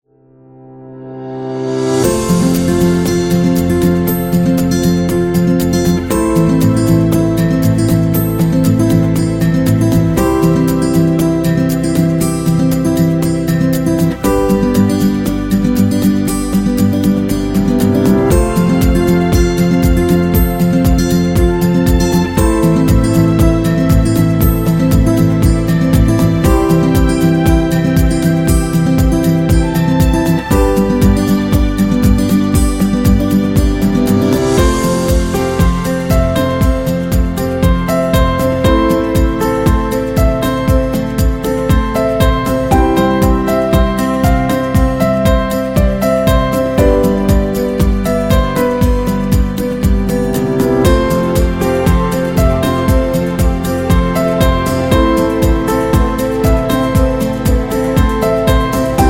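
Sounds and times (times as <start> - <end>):
optimistic guitar: 0.9 - 59.0.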